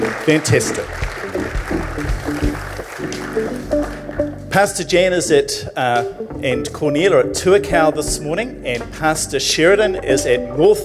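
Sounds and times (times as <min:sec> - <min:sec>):
audience clapping: 0:00.0 - 0:04.5
speech: 0:00.2 - 0:01.0, 0:04.6 - 0:10.8.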